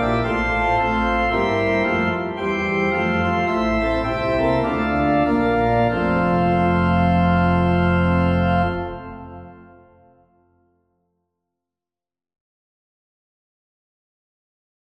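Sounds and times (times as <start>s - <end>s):
organ playing a hymn: 0.0s - 10.5s.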